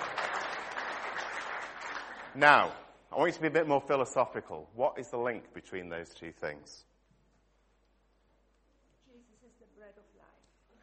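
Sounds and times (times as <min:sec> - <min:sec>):
audience applause: 0:00.0 - 0:02.7
speech: 0:02.4 - 0:06.9.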